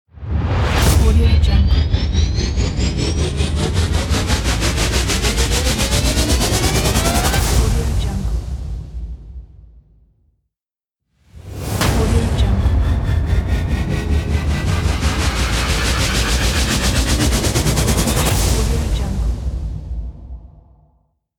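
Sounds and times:
tension building music: 0:00.2 - 0:09.5, 0:11.5 - 0:20.6.

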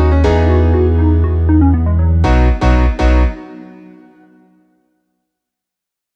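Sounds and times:
tropical house music: 0:00.2 - 0:03.2.

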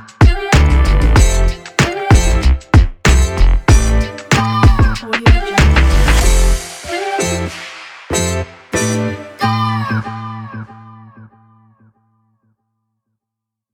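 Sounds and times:
upbeat vlog hip hop music: 0:00.0 - 0:10.5.

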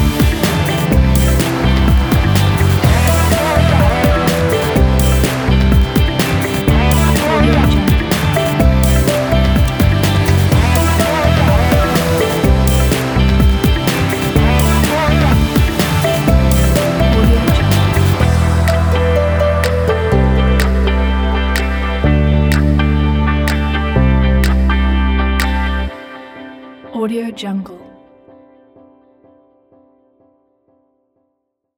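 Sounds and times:
upbeat energetic modern pop music: 0:00.0 - 0:25.9.

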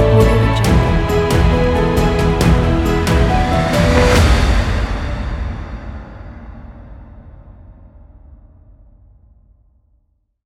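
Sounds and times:
inspiring cinematic music: 0:00.0 - 0:06.2.

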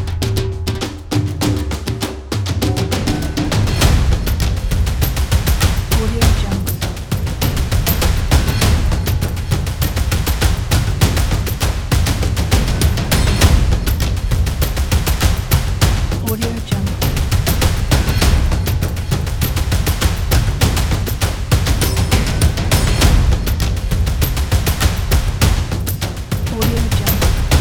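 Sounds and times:
epic ethnic percussion: 0:00.0 - 0:27.5.

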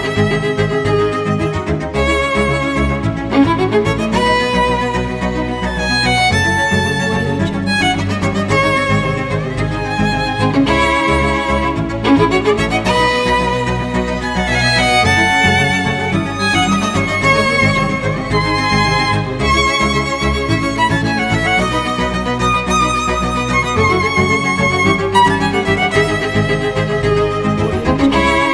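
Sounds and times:
modern energetic cellos: 0:00.0 - 0:28.5
modern energetic violins: 0:00.0 - 0:28.5.

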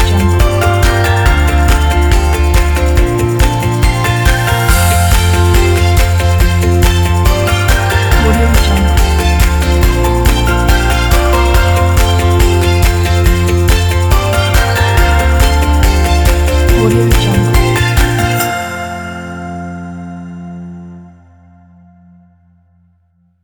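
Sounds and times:
upbeat indie folk music: 0:00.0 - 0:18.7.

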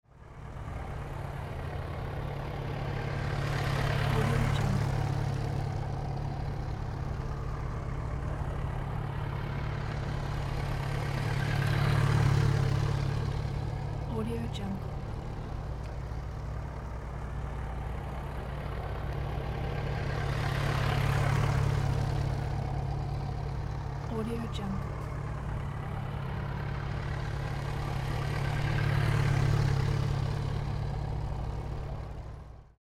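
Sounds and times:
motorcycle riding slow figure eight laps: 0:00.1 - 0:32.7.

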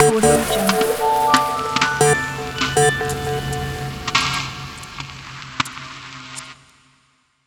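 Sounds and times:
digital wave logo sound: 0:00.0 - 0:04.8.

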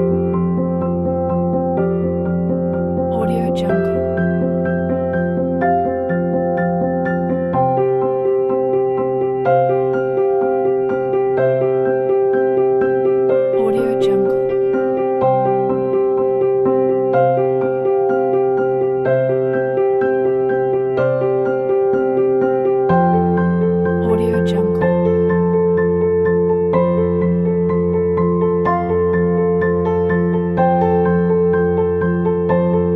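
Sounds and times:
inspiring solo piano music: 0:00.0 - 0:32.9.

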